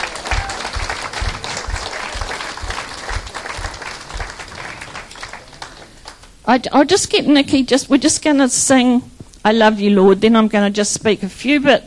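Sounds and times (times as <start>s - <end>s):
low thumping beat: 0.0s - 5.0s
audience applause: 0.0s - 6.4s
speech: 6.5s - 11.8s.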